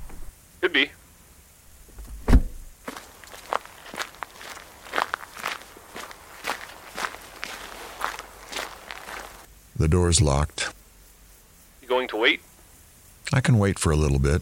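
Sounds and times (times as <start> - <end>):
speech: 0.7 - 1.0, 9.8 - 10.8, 12.1 - 12.5, 13.3 - 14.3
faint rustling: 1.7 - 9.5
footsteps walking to a church door: 1.8 - 9.5.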